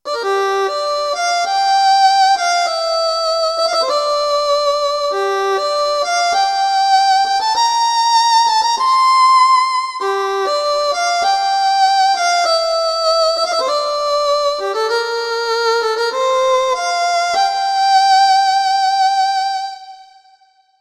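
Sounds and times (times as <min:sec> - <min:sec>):
violin: 0:00.0 - 0:20.6.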